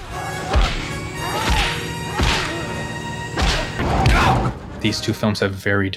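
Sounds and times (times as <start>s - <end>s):
over-the-top movie punch thud sound effect: 1.4s - 2.6s, 3.4s - 4.5s
speech: 4.8s - 5.9s.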